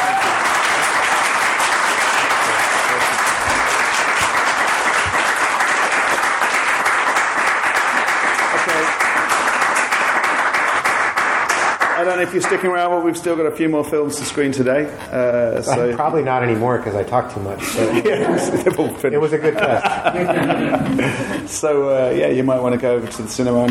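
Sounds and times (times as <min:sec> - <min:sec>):
audience applause: 0:00.0 - 0:12.6
speech: 0:12.2 - 0:23.7
laughter: 0:17.6 - 0:21.5.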